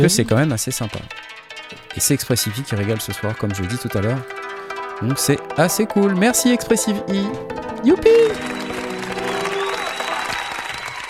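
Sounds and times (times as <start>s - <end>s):
speech: 0.0s - 1.4s, 2.0s - 4.4s, 5.0s - 8.7s
audience applause: 8.1s - 11.0s.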